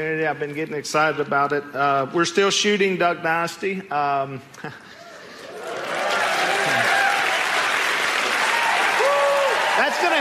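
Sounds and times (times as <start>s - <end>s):
speech: 0.0s - 5.0s
audience applause: 5.4s - 10.1s.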